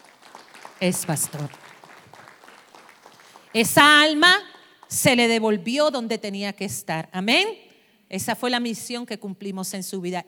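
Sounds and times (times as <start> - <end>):
audience applause: 0.0 - 3.5
speech: 0.8 - 1.6, 3.6 - 10.2.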